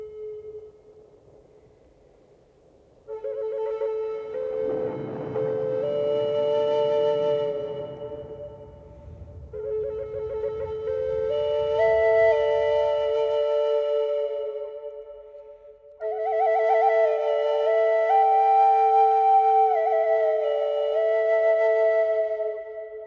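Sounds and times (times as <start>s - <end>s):
Native American flutes: 0.0s - 1.4s, 3.1s - 23.0s
thunder on a warm summer evening: 3.5s - 14.9s.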